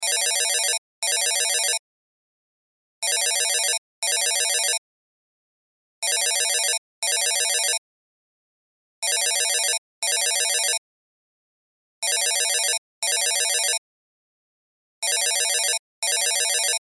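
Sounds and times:
cell phone ringtone: 0.0 - 1.8, 3.0 - 4.8, 6.0 - 7.8, 9.0 - 10.8, 12.0 - 13.8, 15.0 - 16.8.

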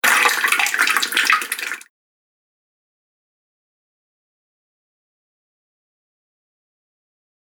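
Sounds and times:
water dripping from a tap: 0.0 - 1.8.

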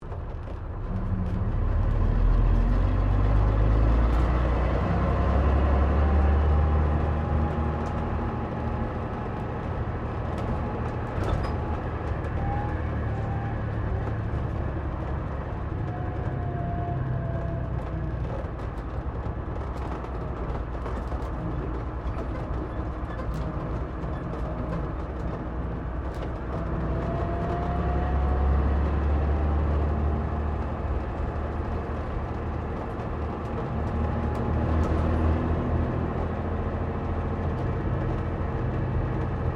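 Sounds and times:
Bristol VR double-decker bus interior while driving: 0.0 - 39.5.

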